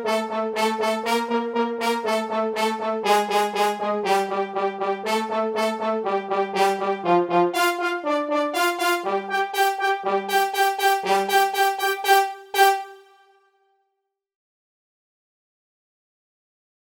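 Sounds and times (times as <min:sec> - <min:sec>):
horn: 0:00.0 - 0:13.5.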